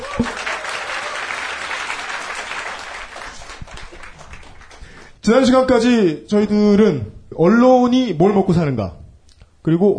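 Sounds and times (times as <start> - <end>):
crowd applause: 0.0 - 5.1
speech: 5.3 - 9.0, 9.6 - 9.9.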